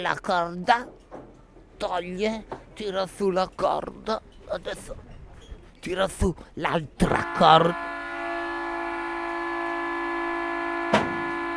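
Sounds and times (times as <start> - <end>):
speech: 0.0 - 1.1, 1.8 - 5.1, 5.8 - 7.9
long whistle of a departing boat: 7.0 - 11.5
sharp knock: 10.9 - 11.2.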